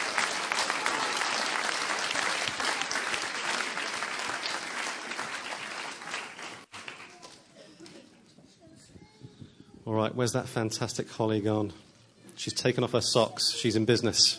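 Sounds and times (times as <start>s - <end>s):
audience applause: 0.0s - 7.2s
speech: 9.9s - 14.3s.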